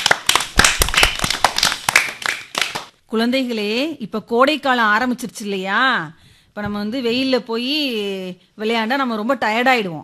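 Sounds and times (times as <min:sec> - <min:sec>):
audience clapping: 0:00.0 - 0:02.9
speech: 0:03.1 - 0:10.0.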